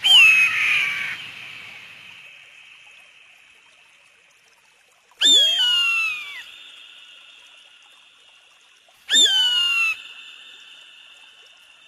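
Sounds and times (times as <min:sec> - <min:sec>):
wedge-tailed eagle calling in high thin whistles: 0:00.0 - 0:01.2, 0:05.2 - 0:06.6, 0:09.1 - 0:10.1.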